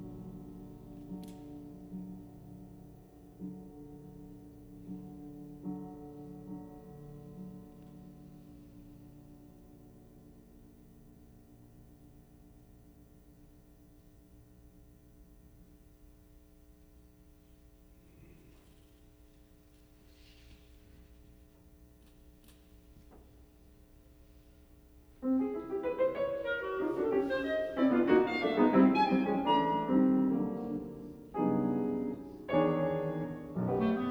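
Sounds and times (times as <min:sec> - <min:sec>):
clarinet and piano pieces: 0:00.0 - 0:12.0, 0:25.2 - 0:34.0.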